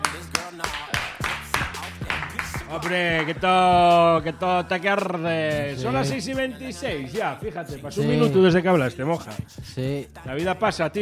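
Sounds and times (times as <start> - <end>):
crowd timid applause: 0.0 - 3.5
speech: 2.7 - 11.0.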